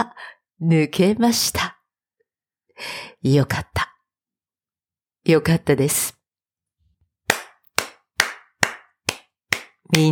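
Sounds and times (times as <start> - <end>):
speech: 0.0 - 1.7, 2.8 - 3.9, 5.2 - 6.2, 9.9 - 10.1
audience clapping: 7.3 - 10.1.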